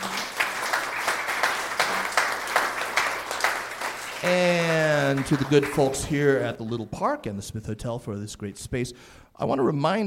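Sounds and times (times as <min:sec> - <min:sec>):
audience applause: 0:00.0 - 0:06.6
speech: 0:04.2 - 0:10.0.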